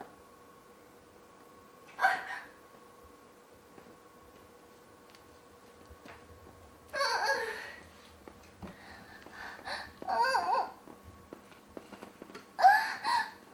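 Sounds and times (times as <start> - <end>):
young woman moaning in climax: 2.0 - 2.5, 6.9 - 7.8, 12.6 - 13.4.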